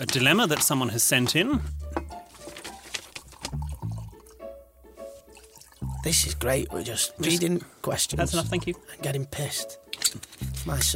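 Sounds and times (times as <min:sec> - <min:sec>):
speech: 0:00.0 - 0:02.0, 0:06.1 - 0:10.9
drink being poured into glass: 0:03.3 - 0:04.5, 0:05.2 - 0:06.2.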